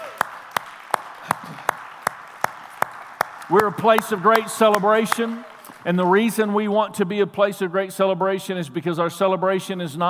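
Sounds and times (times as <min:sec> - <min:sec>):
audience clapping: 0:00.0 - 0:06.8
speech: 0:03.5 - 0:10.0.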